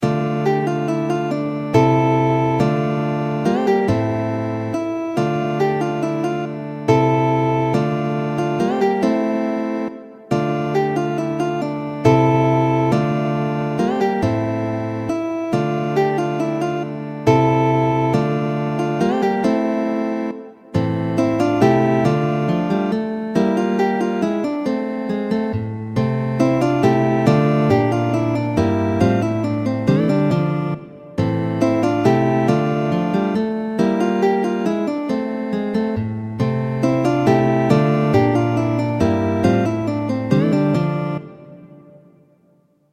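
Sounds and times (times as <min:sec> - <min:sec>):
guitar minuet: 0:00.0 - 0:42.5.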